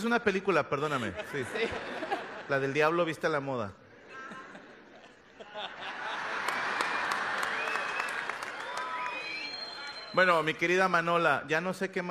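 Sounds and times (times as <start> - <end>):
speech: 0.0 - 3.8, 10.1 - 12.0
laughter: 0.8 - 3.3, 4.0 - 8.4
applause: 6.1 - 10.3.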